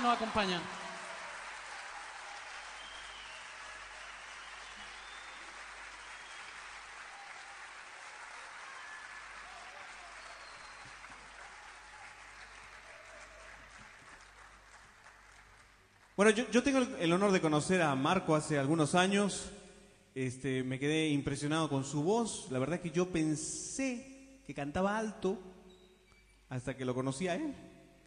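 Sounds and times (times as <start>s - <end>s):
speech: 0.0s - 0.8s, 16.2s - 19.6s, 20.2s - 25.5s, 26.5s - 27.7s
audience applause for the musicians: 0.0s - 16.3s.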